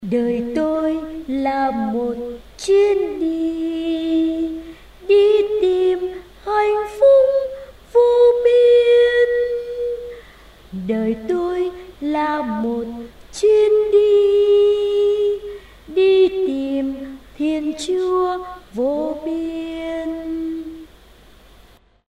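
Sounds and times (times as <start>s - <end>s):
soprano voice: 0.0s - 21.0s.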